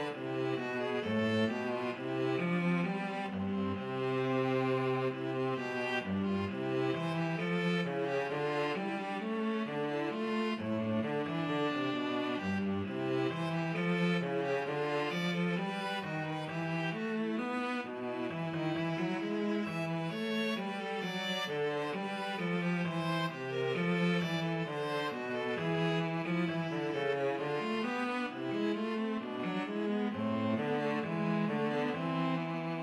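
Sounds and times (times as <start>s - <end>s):
viola and cello duet playing a bourree: 0.0s - 32.8s.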